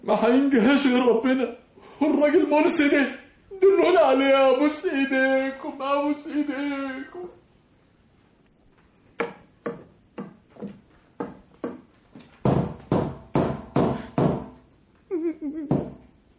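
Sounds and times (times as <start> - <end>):
speech: 0.1 - 7.4
sharp knocks and heavy pounding on a door: 9.2 - 14.6, 15.7 - 16.1.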